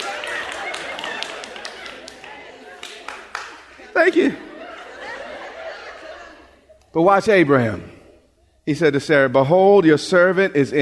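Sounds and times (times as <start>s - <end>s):
audience clapping: 0.0s - 4.4s
laughter: 0.0s - 7.8s
speech: 4.0s - 4.5s, 6.9s - 8.0s, 8.7s - 10.8s.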